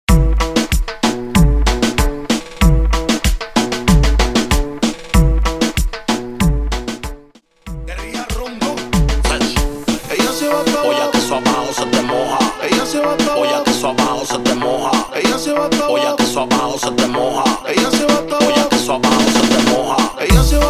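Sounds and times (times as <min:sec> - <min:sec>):
remix music at 95 BPM: 0:00.1 - 0:20.6.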